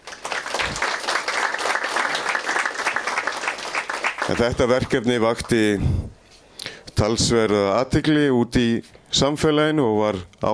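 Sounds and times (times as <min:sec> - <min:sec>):
audience in a hall applauding a photography competition winner: 0:00.0 - 0:05.6
speech: 0:04.3 - 0:06.2, 0:07.0 - 0:10.5.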